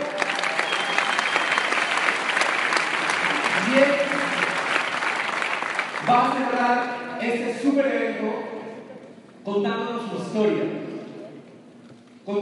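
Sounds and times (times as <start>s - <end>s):
applause: 0.0s - 7.0s
speech: 6.1s - 8.5s, 9.5s - 10.8s.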